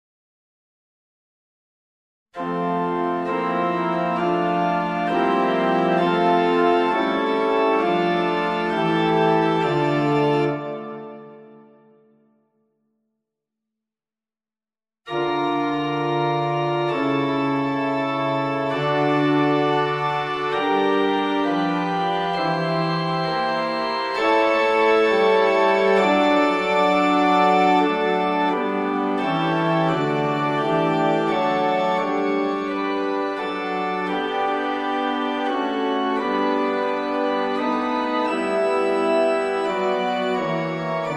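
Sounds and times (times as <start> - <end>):
instrumental music: 2.4 - 12.4, 15.1 - 41.1.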